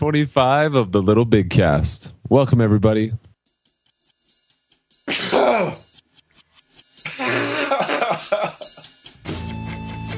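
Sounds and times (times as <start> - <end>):
speech: 0.0 - 3.2
sneeze: 5.1 - 5.8
laughter: 7.0 - 8.8.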